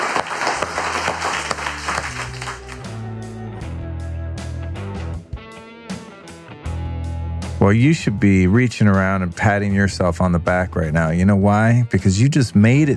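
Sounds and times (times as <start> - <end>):
audience applause: 0.0 - 3.1
speech: 7.6 - 12.9.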